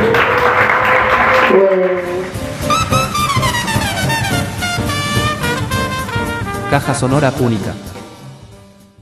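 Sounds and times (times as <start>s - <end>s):
audience applause: 0.0s - 4.2s
speech: 1.6s - 2.1s, 6.7s - 7.9s
sustained melodic tones with sliding pitches: 2.5s - 6.9s.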